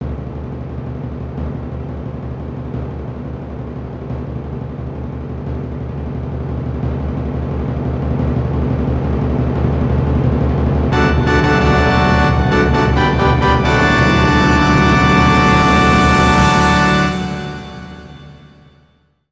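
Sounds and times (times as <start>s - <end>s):
timpani roll: 0.0s - 18.6s
circus music: 10.9s - 18.7s
fanfare flourish: 10.9s - 18.8s.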